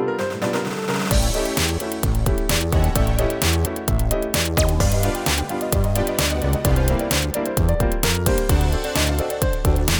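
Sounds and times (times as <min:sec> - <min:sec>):
instrumental music: 0:00.2 - 0:09.9.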